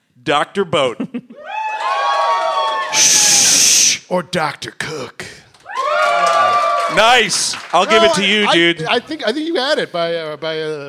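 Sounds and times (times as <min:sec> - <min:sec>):
speech: 0:00.2 - 0:01.3, 0:02.9 - 0:05.2, 0:06.9 - 0:10.8
live audience cheering and whooping: 0:01.4 - 0:03.6, 0:05.7 - 0:08.6
faint clapping: 0:05.5 - 0:08.2.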